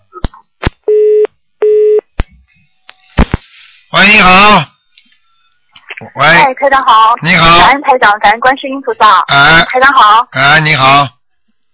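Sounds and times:
phone line busy tone beeps: 0:00.9 - 0:02.0
speech: 0:04.0 - 0:04.7, 0:06.0 - 0:11.2.

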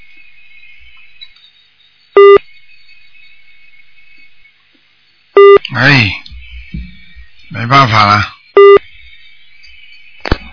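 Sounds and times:
faint high hum: 0:00.0 - 0:10.5
telephone busy-line tone: 0:02.2 - 0:02.4, 0:05.4 - 0:05.6, 0:08.6 - 0:08.8
speech: 0:05.7 - 0:06.2, 0:07.5 - 0:08.3.

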